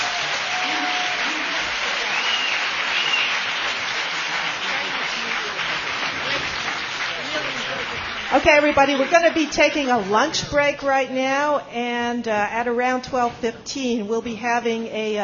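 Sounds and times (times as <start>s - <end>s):
crowd applauding: 0.0s - 10.4s
speech: 8.4s - 15.2s.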